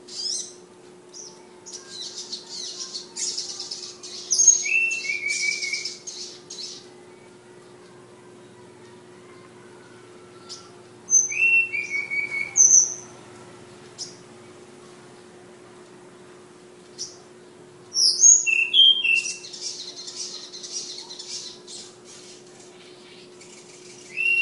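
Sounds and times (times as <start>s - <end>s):
low steady hum: 0.0s - 24.4s
flowerpecker whistles and chirps: 1.8s - 6.8s, 10.4s - 13.1s, 18.0s - 21.6s, 23.8s - 24.4s.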